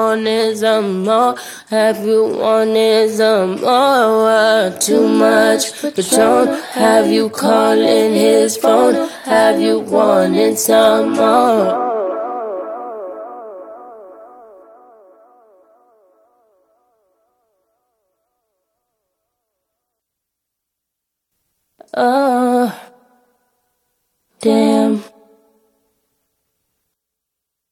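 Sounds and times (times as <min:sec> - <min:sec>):
a cappella singing: 0:00.0 - 0:13.2, 0:21.8 - 0:23.1, 0:24.4 - 0:25.4.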